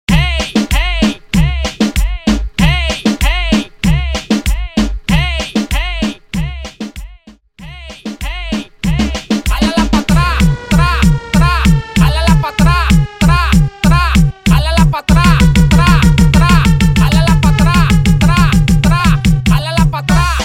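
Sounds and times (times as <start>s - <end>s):
reggaeton to dembow transition music: 0.1s - 20.4s.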